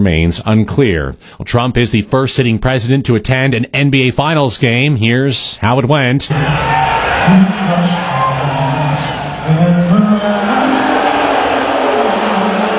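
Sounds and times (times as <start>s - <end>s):
speech: 0.0s - 8.6s
large arena crowd booing: 6.3s - 12.7s.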